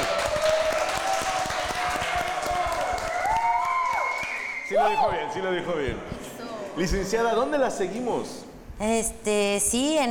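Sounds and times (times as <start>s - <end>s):
audience applause: 0.0s - 4.7s
speech: 4.8s - 6.2s, 6.8s - 10.0s.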